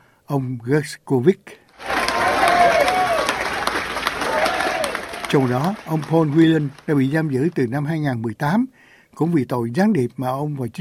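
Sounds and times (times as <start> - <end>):
speech: 0.3 - 1.6, 5.3 - 10.7
newsroom staff cheering and whooping: 1.8 - 5.8
newsroom staff applauding: 1.8 - 7.6.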